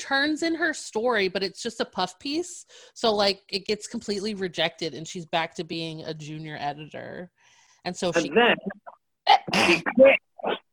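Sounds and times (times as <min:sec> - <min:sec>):
speech: 0:00.0 - 0:10.6
person sneezing: 0:08.2 - 0:10.6.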